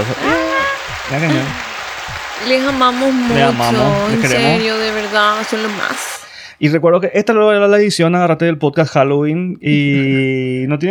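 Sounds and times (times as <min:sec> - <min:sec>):
speech: 0:00.0 - 0:00.4, 0:01.1 - 0:01.7, 0:02.4 - 0:10.9
laughter: 0:00.0 - 0:05.5, 0:09.7 - 0:10.4
audience applause: 0:00.0 - 0:06.2.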